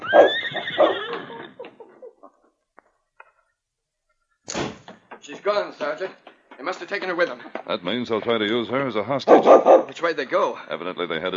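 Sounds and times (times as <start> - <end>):
horse snorting: 0.0 - 1.6, 9.3 - 10.0
horse whinnying: 0.0 - 1.8
speech: 0.1 - 1.0, 5.3 - 11.3
laughter: 1.0 - 2.6.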